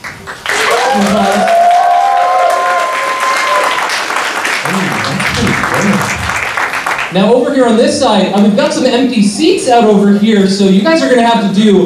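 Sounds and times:
audience applause and cheering: 0.0s - 7.2s
speech: 1.0s - 1.6s, 5.7s - 6.2s, 7.1s - 11.8s.

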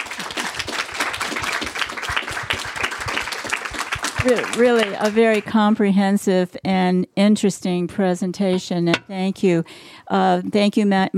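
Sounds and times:
applause: 0.0s - 5.6s
speech: 4.2s - 11.1s.

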